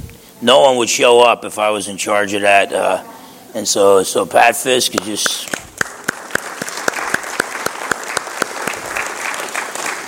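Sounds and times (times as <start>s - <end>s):
speech: 0.4s - 5.6s
audience applause: 5.2s - 10.0s.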